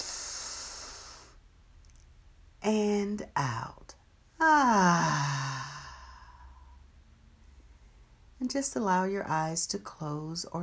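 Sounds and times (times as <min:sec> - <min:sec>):
deep inhale during a guided breathing exercise: 0:00.0 - 0:01.4, 0:04.8 - 0:06.9
speech: 0:02.7 - 0:03.8, 0:04.4 - 0:05.4, 0:08.4 - 0:10.6.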